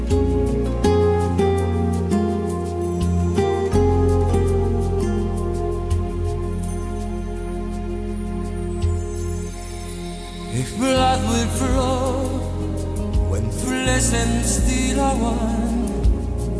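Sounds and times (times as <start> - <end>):
lead guitar: 0.0 - 16.5.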